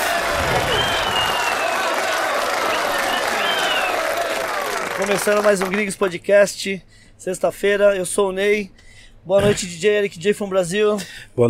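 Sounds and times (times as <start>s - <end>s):
whistles: 0.0s - 5.1s
crowd applauding: 0.0s - 6.0s
voices cheering: 0.0s - 6.1s
speech: 5.0s - 11.4s.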